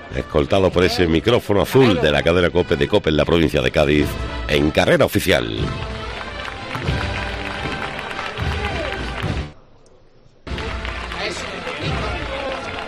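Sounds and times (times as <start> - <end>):
speech: 0.1 - 5.9
crowd applauding: 5.4 - 9.6, 10.5 - 12.8.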